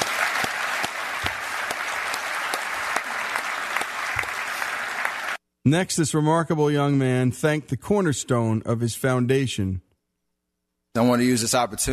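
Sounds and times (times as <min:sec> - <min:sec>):
audience applause: 0:00.0 - 0:05.4
speech: 0:05.6 - 0:09.9, 0:10.9 - 0:11.9.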